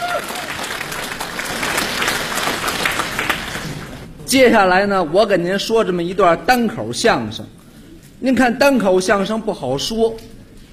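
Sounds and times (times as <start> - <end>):
audience applause: 0.0 - 4.1
speech: 4.3 - 7.6, 8.2 - 10.3.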